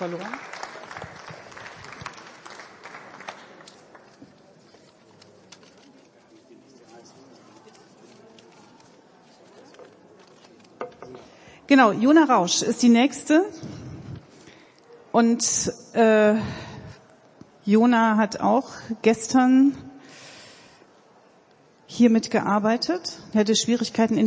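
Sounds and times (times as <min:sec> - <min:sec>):
speech: 0:00.0 - 0:00.6, 0:11.7 - 0:13.8, 0:15.2 - 0:16.6, 0:17.7 - 0:19.8, 0:22.0 - 0:24.2
audience applause: 0:00.0 - 0:04.6.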